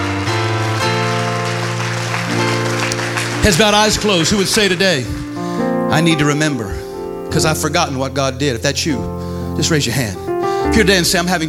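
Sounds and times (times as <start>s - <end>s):
audience applause: 0.0s - 5.6s
sustained keyboard chords: 0.0s - 11.4s
speech: 3.4s - 5.2s, 5.9s - 11.4s.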